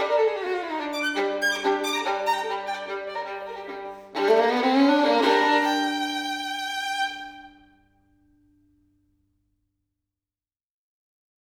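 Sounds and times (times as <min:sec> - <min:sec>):
solo violin caprice in G minor: 0:00.0 - 0:08.0.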